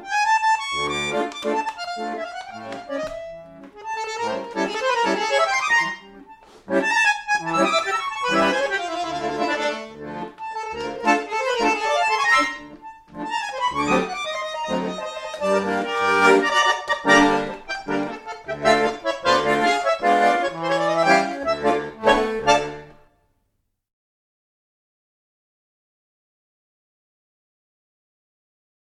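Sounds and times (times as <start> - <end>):
tango music: 0.0 - 23.0.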